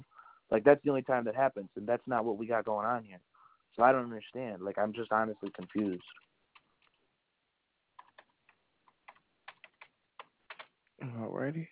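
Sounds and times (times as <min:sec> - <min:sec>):
speech: 0:00.5 - 0:06.3, 0:11.0 - 0:11.7
typing on a computer keyboard: 0:05.4 - 0:07.0, 0:08.0 - 0:10.7.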